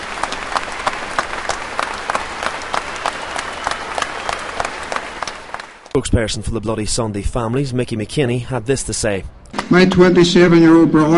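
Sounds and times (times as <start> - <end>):
rapturous applause from a crowd: 0.0 - 6.0
speech: 6.0 - 11.1.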